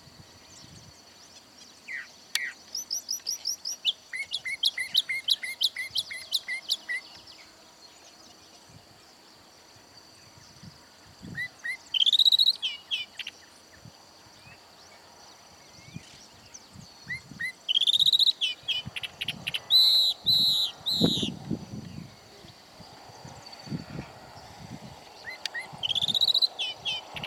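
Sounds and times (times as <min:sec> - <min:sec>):
Calandra lark song: 0:00.0 - 0:08.4, 0:10.6 - 0:14.6, 0:15.7 - 0:22.9, 0:25.1 - 0:27.2.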